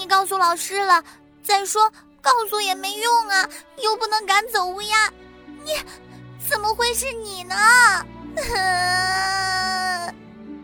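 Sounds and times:
speech: 0.2 - 9.5
girl crying: 5.6 - 6.0, 6.6 - 10.2.

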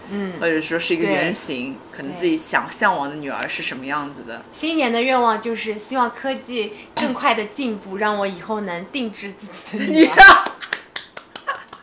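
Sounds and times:
speech: 0.1 - 10.6
applause: 10.4 - 11.8.

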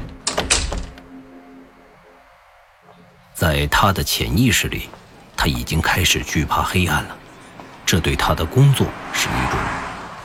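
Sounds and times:
door opening and closing: 0.0 - 1.1
speech: 3.4 - 7.2, 7.9 - 9.6.

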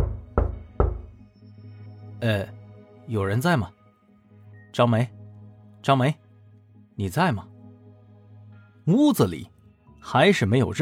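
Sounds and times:
knocking on a door: 0.0 - 1.2
speech: 2.2 - 3.8, 4.7 - 5.2, 5.8 - 6.2, 7.0 - 7.5, 8.8 - 10.7.

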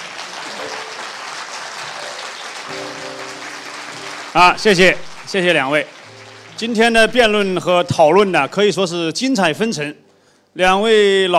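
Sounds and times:
audience applause: 0.0 - 8.2
speech: 4.4 - 6.0, 6.6 - 10.0, 10.6 - 11.3.

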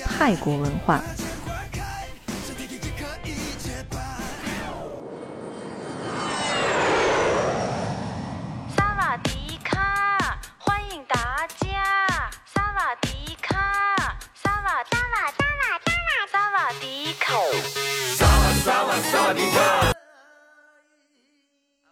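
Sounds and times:
music: 0.0 - 5.0, 8.8 - 20.0
speech: 0.2 - 1.2
jet airplane flying to Bangkok, Thailand: 4.3 - 10.3.

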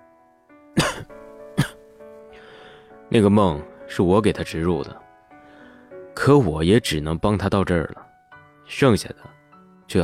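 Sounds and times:
person coughing: 0.8 - 1.8
speech: 3.1 - 5.0, 6.2 - 8.1, 8.7 - 10.0.

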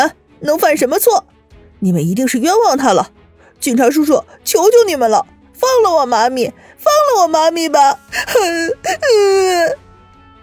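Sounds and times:
speech: 0.0 - 9.8
children crying and wailing: 7.0 - 9.8.

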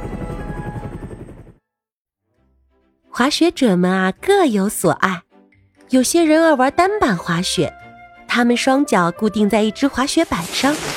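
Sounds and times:
helicopter: 0.0 - 1.6
speech: 3.2 - 5.2, 5.9 - 7.8, 8.4 - 10.9.

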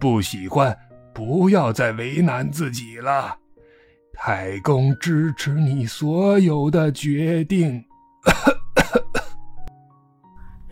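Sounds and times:
speech: 0.0 - 3.4, 4.2 - 8.6
old man coughing violently: 8.2 - 9.4.

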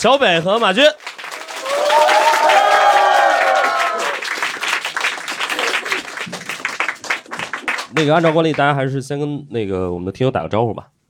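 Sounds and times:
speech: 0.0 - 1.1, 8.0 - 10.9
audience applause welcoming guests: 0.0 - 8.8.

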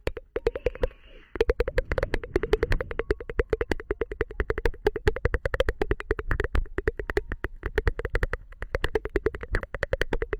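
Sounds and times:
rapid tongue clicks: 0.0 - 10.3
faint breathy hiss: 0.5 - 3.5.

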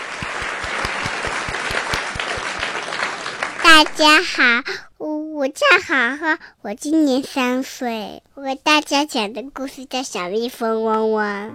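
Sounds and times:
applause from a group: 0.0 - 4.5
speech: 3.8 - 11.5.

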